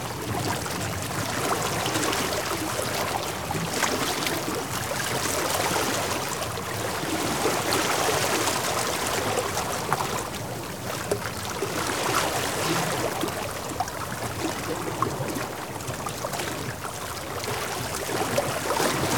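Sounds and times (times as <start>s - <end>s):
water filling tide pools: 0.0s - 19.1s.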